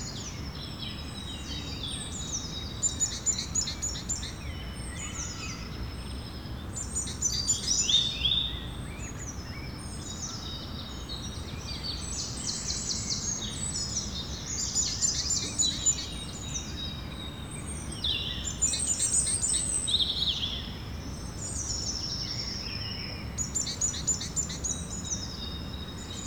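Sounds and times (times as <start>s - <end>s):
birds singing in a mixed chorus in the evening: 0.0s - 26.2s.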